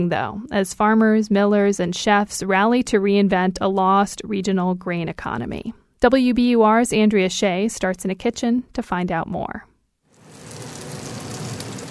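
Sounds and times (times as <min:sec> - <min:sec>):
speech: 0:00.0 - 0:09.7
cornbread sizzling in melted butter in pan: 0:10.1 - 0:11.9.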